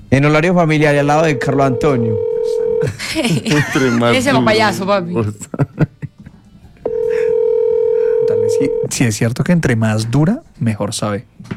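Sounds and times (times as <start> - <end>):
speech: 0.1 - 5.9, 8.6 - 11.5
telephone ringback tone on an unanswered call: 1.1 - 2.9, 6.9 - 8.9
laughter: 2.8 - 6.5.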